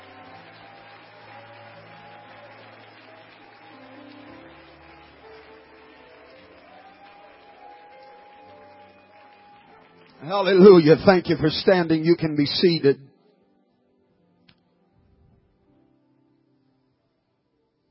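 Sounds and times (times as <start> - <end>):
audience clapping hands: 0.0 - 12.9
speech: 10.2 - 13.1.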